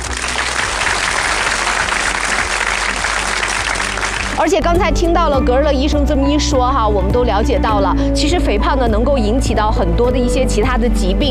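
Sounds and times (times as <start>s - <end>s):
audience applause: 0.0s - 4.4s
speech: 4.4s - 11.2s.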